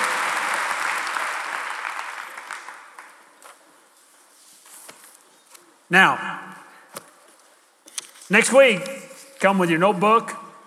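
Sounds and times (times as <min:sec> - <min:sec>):
audience applause: 0:00.0 - 0:03.4
speech: 0:05.9 - 0:06.4, 0:08.3 - 0:10.4.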